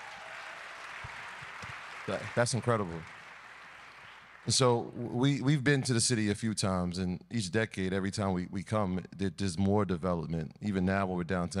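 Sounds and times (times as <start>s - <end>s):
audience applause: 0.0s - 5.0s
speech: 2.1s - 3.2s, 4.4s - 11.5s.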